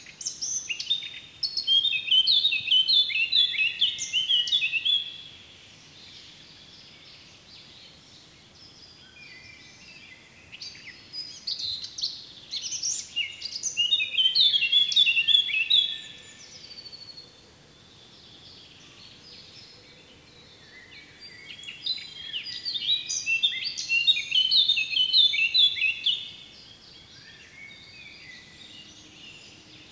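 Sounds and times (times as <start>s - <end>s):
Eurasian blackcap song: 0.0s - 29.9s.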